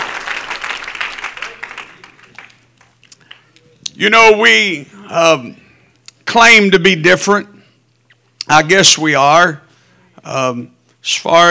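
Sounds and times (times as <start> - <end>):
audience clapping hands: 0.0 - 3.6
speech: 4.0 - 5.6, 6.3 - 7.5, 8.5 - 9.6, 10.2 - 11.4.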